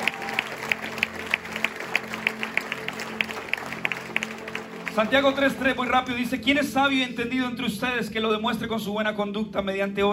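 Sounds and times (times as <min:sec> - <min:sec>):
audience clapping in a steady rhythmic beat: 0:00.0 - 0:07.0
speech: 0:05.0 - 0:10.1.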